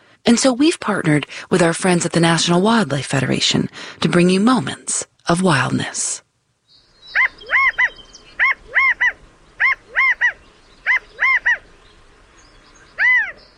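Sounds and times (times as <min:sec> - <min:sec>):
speech: 0:00.3 - 0:06.2
California quail calling: 0:07.0 - 0:11.8, 0:12.9 - 0:13.5.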